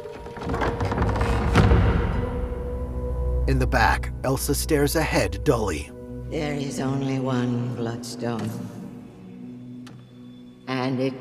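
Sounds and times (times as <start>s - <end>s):
faint creaks: 0.0s - 2.5s
heavy casket doors swinging shut: 0.0s - 3.7s
low rumbling drone: 0.4s - 9.1s
speech: 3.5s - 8.8s, 10.9s - 11.1s.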